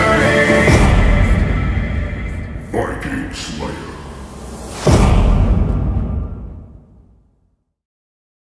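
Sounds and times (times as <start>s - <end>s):
Viking Nordic song: 0.0s - 5.4s.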